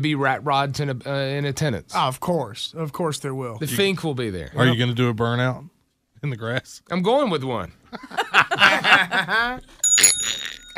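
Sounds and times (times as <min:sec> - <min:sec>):
speech: 0:00.0 - 0:10.7
laughter: 0:07.9 - 0:09.7
bell ringing: 0:09.8 - 0:10.7.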